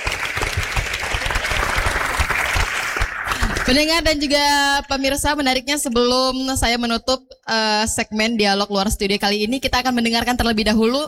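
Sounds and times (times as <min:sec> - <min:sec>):
audience applauding: 0:00.0 - 0:04.2
speech: 0:03.7 - 0:11.0.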